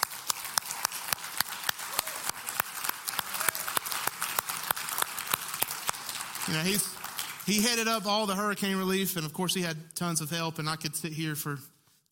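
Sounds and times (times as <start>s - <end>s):
audience applause: 0.0s - 7.9s
speech: 6.5s - 12.1s.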